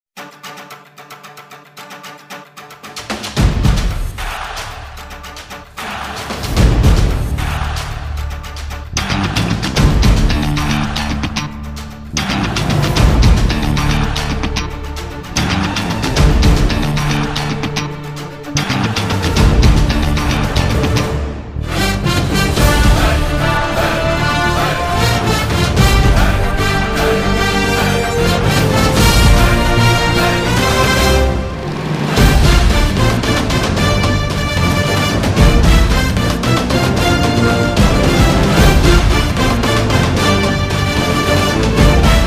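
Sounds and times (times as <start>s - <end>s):
instrumental theme music: 0.2s - 42.2s.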